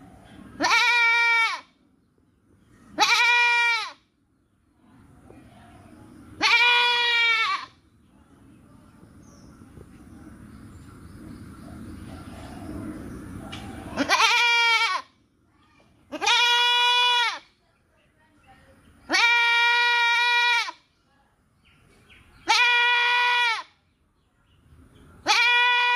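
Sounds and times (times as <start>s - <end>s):
happy goat bleating: 0.6s - 1.7s, 3.0s - 4.0s, 6.4s - 7.8s, 14.0s - 15.1s, 16.1s - 17.5s, 19.1s - 20.8s, 22.4s - 23.7s, 25.2s - 25.9s.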